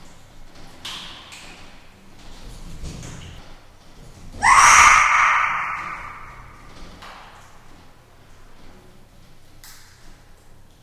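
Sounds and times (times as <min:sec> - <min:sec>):
chimpanzee screaming while climbing a cage in a large space: 0:04.4 - 0:06.7.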